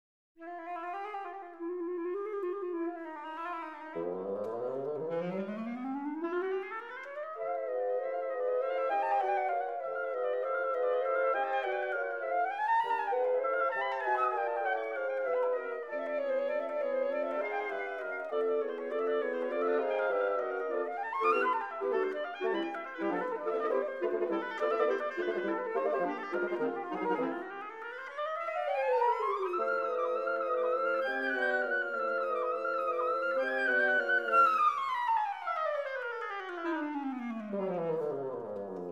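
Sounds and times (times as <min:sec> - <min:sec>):
woodwind quartet playing a scherzo: 0:00.4 - 0:38.9.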